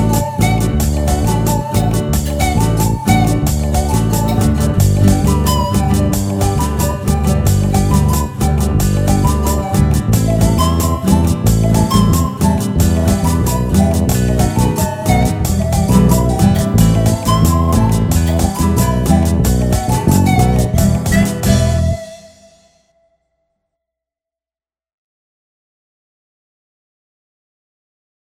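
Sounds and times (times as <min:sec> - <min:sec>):
instrumental backing track without melody: 0:00.0 - 0:22.5.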